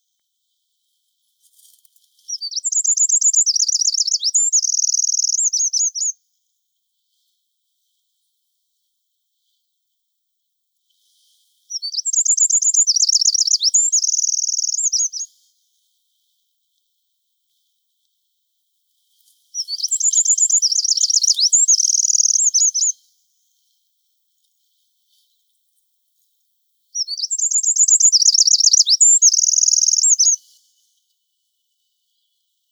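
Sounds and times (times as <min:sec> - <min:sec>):
Eurasian wren song: 0:02.3 - 0:06.2, 0:11.7 - 0:15.3, 0:19.6 - 0:23.0, 0:27.0 - 0:30.6.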